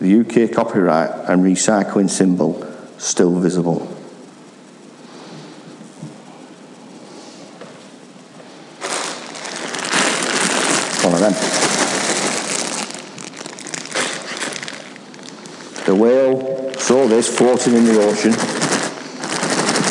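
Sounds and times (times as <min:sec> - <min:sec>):
speech: 0:00.0 - 0:04.0, 0:11.2 - 0:11.6, 0:15.9 - 0:18.8
plastic crisp packet wrapper crinkling: 0:08.8 - 0:19.8.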